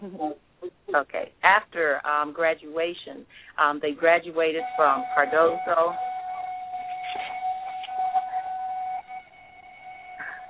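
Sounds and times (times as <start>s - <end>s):
speech: 0.0s - 6.1s
school bell ringing: 4.0s - 10.4s.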